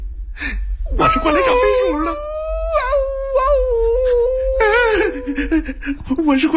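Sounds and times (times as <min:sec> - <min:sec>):
wolf howling: 0:00.9 - 0:06.0
speech: 0:01.0 - 0:02.3, 0:05.2 - 0:06.5.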